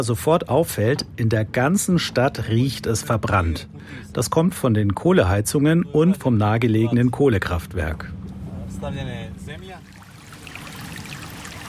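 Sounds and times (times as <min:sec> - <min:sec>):
speech: 0:00.0 - 0:08.2, 0:08.8 - 0:09.8
small stream flowing: 0:09.8 - 0:11.6.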